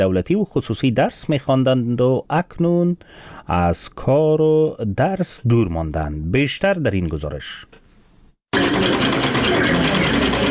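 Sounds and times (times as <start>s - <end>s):
speech: 0.0s - 7.8s
sewing machine whirring in a women's tailoring training workshop: 8.5s - 10.5s.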